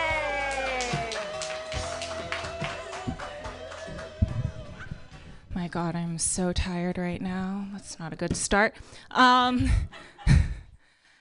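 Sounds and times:
audience applause: 0:00.0 - 0:04.8
sustained tonal music-like hum: 0:01.8 - 0:05.4
speech: 0:05.6 - 0:10.4.

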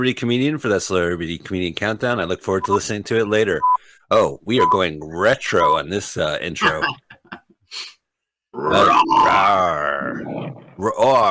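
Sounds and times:
speech: 0:00.0 - 0:07.1, 0:07.7 - 0:11.3
lion roaring: 0:08.6 - 0:11.0.

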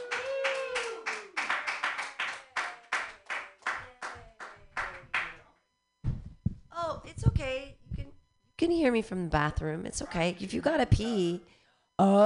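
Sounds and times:
audience clapping: 0:00.0 - 0:05.4
speech: 0:07.0 - 0:07.8, 0:08.6 - 0:12.2.

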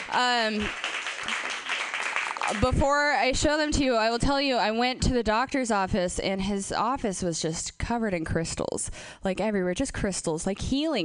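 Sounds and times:
audience round of applause: 0:00.0 - 0:02.7
speech: 0:00.1 - 0:01.6, 0:02.5 - 0:11.0.

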